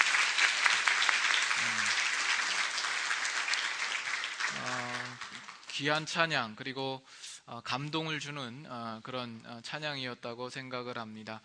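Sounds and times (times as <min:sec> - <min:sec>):
applause for church choir: 0:00.0 - 0:06.2
speech: 0:05.8 - 0:11.4.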